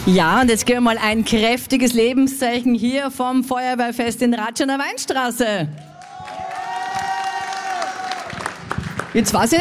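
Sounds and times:
speech: 0.1s - 5.9s, 9.2s - 9.5s
crowd whooping and shouting outdoors: 5.8s - 8.8s
crowd clapping outdoors: 5.8s - 9.5s.

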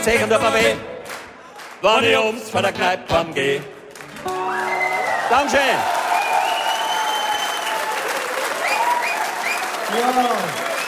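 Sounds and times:
speech: 0.0s - 0.9s, 1.8s - 4.4s, 5.3s - 6.0s, 9.9s - 10.6s
applause: 1.0s - 1.9s, 3.9s - 10.8s.

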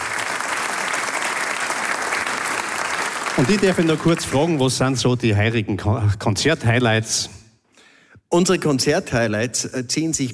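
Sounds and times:
audience applause: 0.0s - 4.6s
speech: 3.4s - 7.4s, 8.3s - 10.3s.

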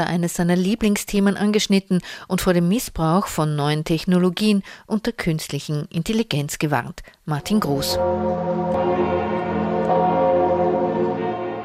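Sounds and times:
speech: 0.0s - 9.5s
large cathedral bells ringing: 7.4s - 11.6s.

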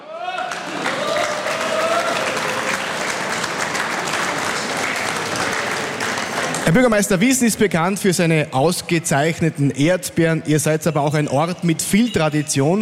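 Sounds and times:
audience applause: 0.0s - 7.1s
speech: 6.7s - 12.8s.

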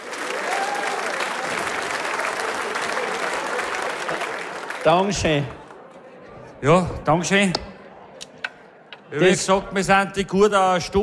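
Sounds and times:
sizable crowd applauding: 0.0s - 5.9s
speech: 4.8s - 5.6s, 6.6s - 7.7s, 9.1s - 11.0s.

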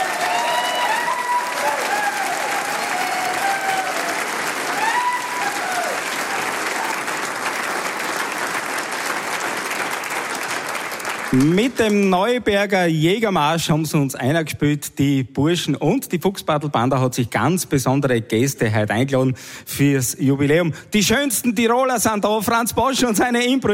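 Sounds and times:
audience applause in a concert hall: 0.0s - 12.1s
speech: 11.4s - 23.7s.

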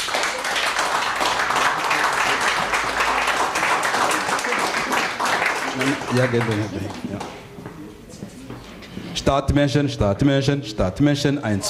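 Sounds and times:
audience applause: 0.0s - 7.4s
speech: 5.8s - 7.4s, 9.2s - 11.6s.

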